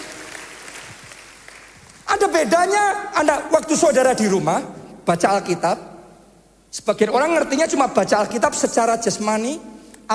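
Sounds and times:
audience applause: 0.0s - 2.0s
speech: 2.2s - 5.9s, 6.7s - 10.1s.

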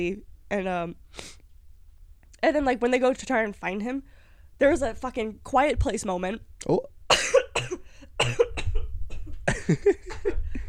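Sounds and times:
speech: 0.0s - 1.4s, 2.4s - 7.4s, 8.2s - 8.5s, 9.7s - 10.3s
coughing fit: 7.1s - 9.8s.

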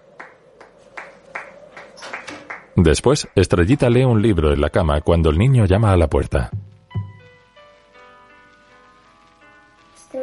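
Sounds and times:
slow hand claps from a character in a comedy film scene: 0.1s - 2.7s
speech: 2.8s - 6.6s.

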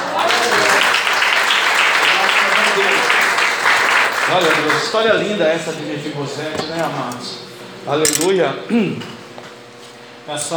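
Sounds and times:
audience applause: 0.0s - 5.6s
murmuring voices: 1.9s - 9.5s
speech: 4.3s - 9.2s, 10.3s - 10.5s.

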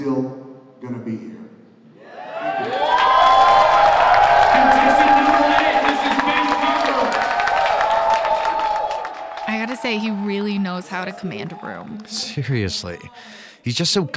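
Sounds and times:
speech: 0.0s - 1.4s, 9.8s - 14.1s
large crowd cheering with shouts and whoops: 1.9s - 13.3s
large crowd clapping: 2.5s - 12.4s.

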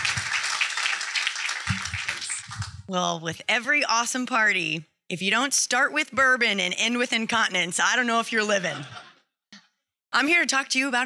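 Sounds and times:
loud applause: 0.0s - 2.8s
speech: 2.9s - 9.0s, 10.1s - 11.0s.

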